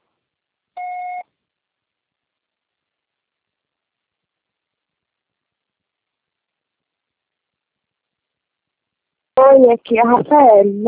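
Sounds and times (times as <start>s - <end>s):
electronic voicemail beep: 0.8s - 1.2s
speech: 9.5s - 10.8s.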